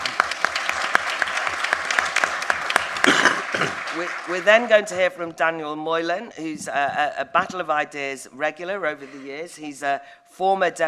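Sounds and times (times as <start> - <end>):
audience applause welcoming a speaker: 0.0 - 5.3
speech: 4.0 - 10.8.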